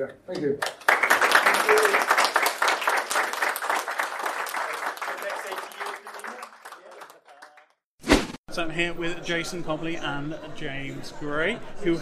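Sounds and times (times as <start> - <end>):
speech: 0.0 - 0.9, 8.6 - 12.0
audience applause: 0.6 - 7.7.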